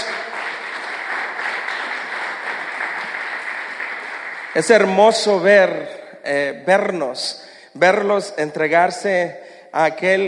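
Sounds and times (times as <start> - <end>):
audience applause: 0.0 - 5.3
speech: 4.6 - 10.2.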